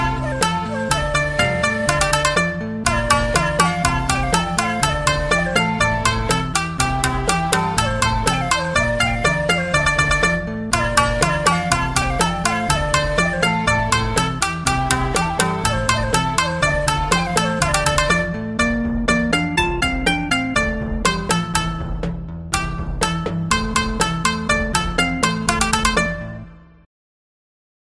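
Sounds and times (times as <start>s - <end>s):
shakuhachi in Japanese folk style: 0.0s - 21.4s
timpani: 0.0s - 26.3s
khanjira: 0.0s - 26.5s
shamisen in Japanese folk style: 0.0s - 26.8s.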